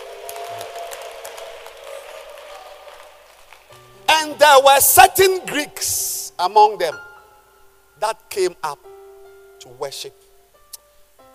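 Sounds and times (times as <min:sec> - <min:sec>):
audience clapping hands: 0:00.0 - 0:04.0
speech: 0:04.4 - 0:07.1, 0:08.0 - 0:08.9, 0:09.6 - 0:10.2.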